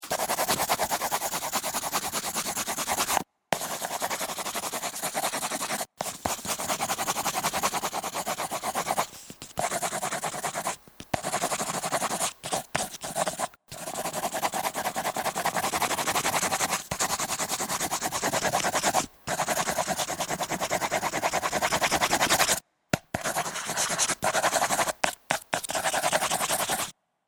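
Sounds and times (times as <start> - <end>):
pencil sketching on paper: 0.0 - 22.6, 23.2 - 26.9.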